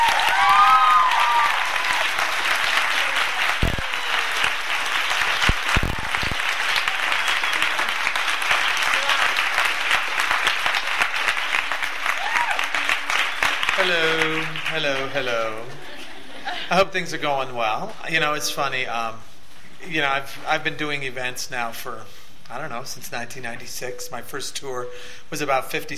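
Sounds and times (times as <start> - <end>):
audience applause welcoming author Nicholas Sparks at Tattered Cover: 0.0 - 15.4
speech: 16.7 - 25.9.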